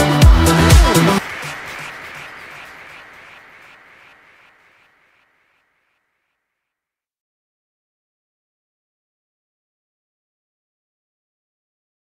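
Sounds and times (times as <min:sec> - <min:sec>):
disco mashup: 0:00.0 - 0:04.5.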